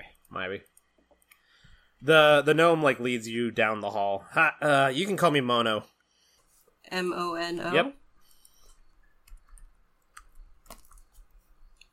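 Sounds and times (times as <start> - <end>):
speech: 0.4 - 0.7, 2.0 - 5.9, 6.9 - 8.0
keyboard clicks during a tabletop role-playing game session: 8.3 - 11.9.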